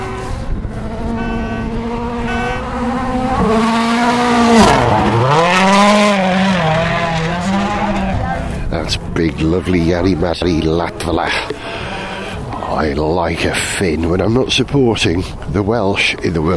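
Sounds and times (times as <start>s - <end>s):
Toyota rally car engine roaring past on a World Rally Championship stage: 0.0s - 13.0s
speech: 9.5s - 11.6s, 12.8s - 16.5s.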